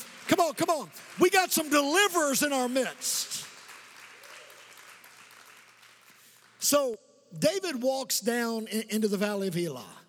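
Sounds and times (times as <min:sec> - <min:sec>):
audience clapping: 0:00.0 - 0:06.8
speech: 0:00.3 - 0:03.4, 0:06.7 - 0:10.0.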